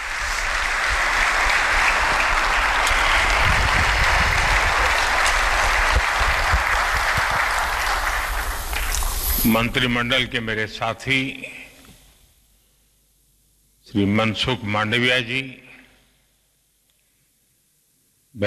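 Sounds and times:
thunderous applause from audience: 0.0s - 10.1s
speech: 9.4s - 11.5s, 13.9s - 15.6s.

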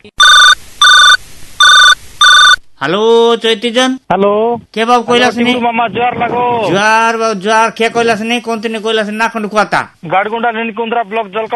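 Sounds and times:
speech: 0.0s - 0.4s, 2.8s - 11.5s
telephone ringing with an incoming call to a radio show: 0.2s - 2.6s.

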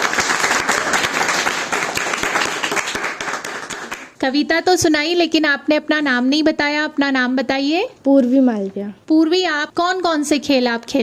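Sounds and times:
children clapping: 0.0s - 4.2s
speech: 4.2s - 11.0s.

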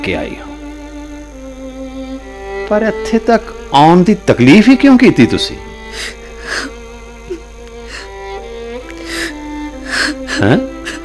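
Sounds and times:
speech: 0.0s - 0.5s, 2.7s - 6.7s, 10.4s - 10.7s
woman crying as she pleads before a maharaja: 5.8s - 8.2s, 9.0s - 11.0s.

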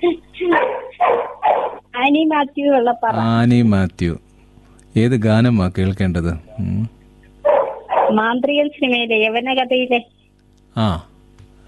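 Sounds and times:
dog barking during a phone call: 0.5s - 1.9s, 7.4s - 8.2s
speech: 2.2s - 4.2s, 5.0s - 7.0s, 8.1s - 10.2s, 10.8s - 11.1s.

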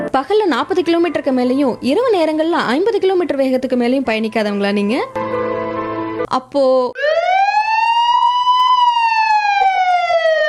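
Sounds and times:
speech: 0.1s - 5.5s, 6.3s - 7.3s
emergency vehicle siren wailing: 7.0s - 10.4s.

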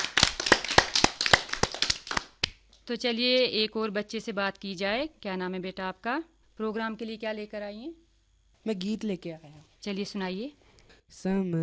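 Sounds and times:
small audience applause: 0.0s - 2.4s
speech: 2.9s - 8.0s, 8.6s - 11.6s.

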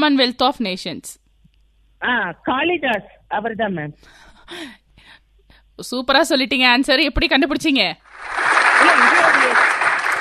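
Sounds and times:
speech: 0.0s - 1.2s, 2.0s - 4.8s, 5.8s - 9.6s
applause: 8.0s - 10.1s.

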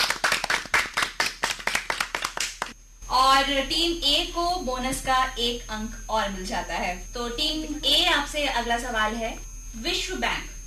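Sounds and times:
audience clapping for quiz team: 0.0s - 2.8s
speech: 3.2s - 10.5s.

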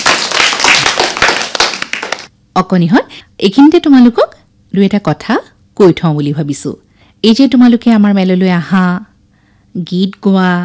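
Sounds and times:
audience clapping for a child's performance: 0.0s - 2.3s
speech: 2.6s - 9.1s, 9.8s - 10.6s.

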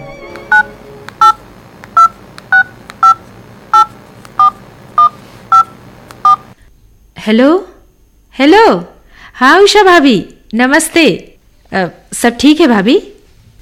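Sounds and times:
touch-tone beeps of a phone number being dialed: 0.4s - 1.4s, 2.0s - 6.5s
speech: 7.2s - 7.7s, 8.4s - 13.1s.

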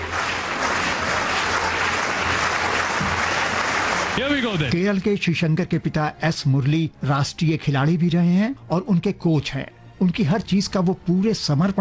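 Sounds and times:
stadium spectators clapping rhythmically: 0.0s - 4.8s
speech: 4.2s - 11.8s.

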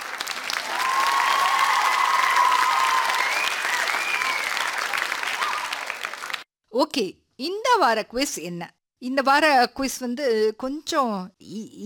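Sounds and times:
loud dense applause from a crowd: 0.0s - 6.5s
speech: 6.8s - 11.8s.

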